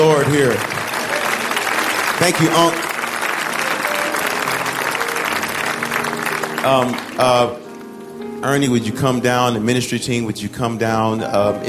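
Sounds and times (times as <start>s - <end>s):
audience applause: 0.0s - 7.7s
speech: 0.2s - 0.8s, 2.2s - 2.9s, 6.6s - 7.6s, 8.4s - 11.6s.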